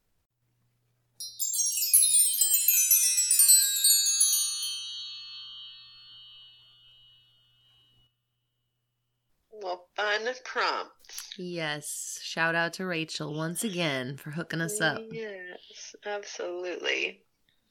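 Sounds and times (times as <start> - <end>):
wind chime ringing: 1.2 - 8.0
speech: 9.6 - 17.6.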